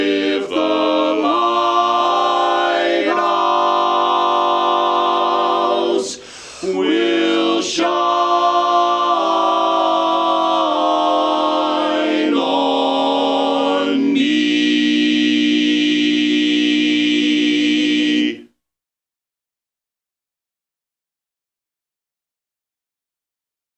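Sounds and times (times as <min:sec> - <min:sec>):
tenor singing: 0:00.0 - 0:18.5.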